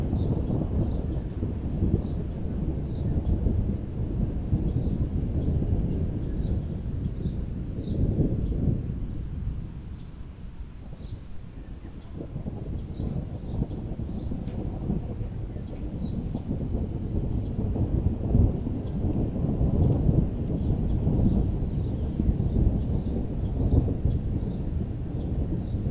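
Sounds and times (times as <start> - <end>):
thunder: 0.0 - 25.8.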